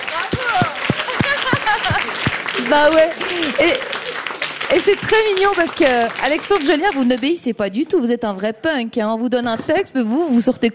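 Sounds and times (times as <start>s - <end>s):
audience clapping in a steady rhythm: 0.0s - 7.5s
laughter: 0.8s - 4.2s
speech: 2.7s - 4.0s, 4.7s - 10.7s.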